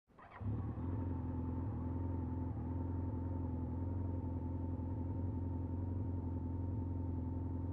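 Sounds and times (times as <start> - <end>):
motorcycle engine starting, idling and turning off: 0.1 - 7.6.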